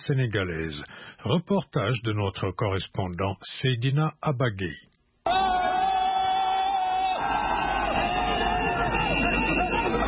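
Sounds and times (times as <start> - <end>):
speech: 0.0 - 4.9
party supporters cheering to welcome Abdoulaye Wade in Dakar: 5.3 - 10.0.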